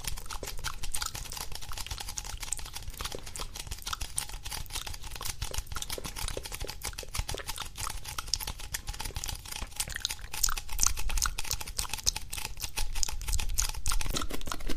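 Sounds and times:
gum chewing with wet mouth sounds: 0.0 - 14.7.

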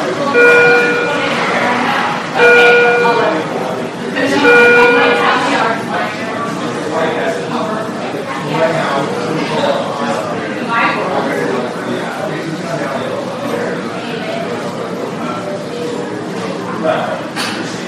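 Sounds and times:
many voices talking in a hospital emergency room: 0.0 - 17.8
short electronic chime: 0.4 - 1.7, 2.4 - 3.5, 4.4 - 5.6.

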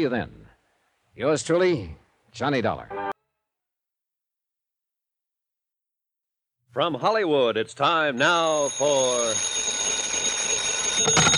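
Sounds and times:
speech: 0.0 - 0.4, 1.2 - 3.0, 6.8 - 9.8
telephone ringing with metallic bell tones: 8.1 - 11.3.

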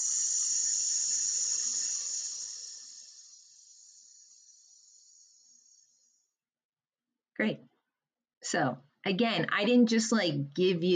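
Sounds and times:
hissing exhale during a breathing exercise: 0.0 - 6.1
speech: 7.4 - 7.7, 8.4 - 10.9.

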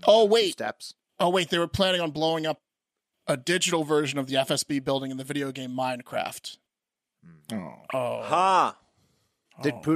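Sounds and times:
speech: 0.1 - 2.7, 3.3 - 6.6, 7.2 - 8.8, 9.6 - 9.9
person yawning: 7.2 - 8.8.

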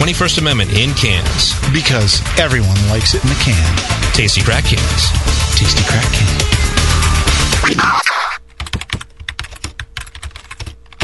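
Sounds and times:
speech: 0.0 - 6.6, 7.6 - 8.2
computer keyboard typing while writing an online review: 8.1 - 11.0.

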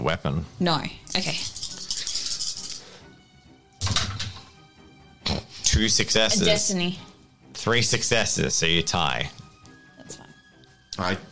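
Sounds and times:
speech: 0.0 - 1.5, 5.8 - 9.4, 11.0 - 11.3
dice rattling across a surface: 1.4 - 2.8.

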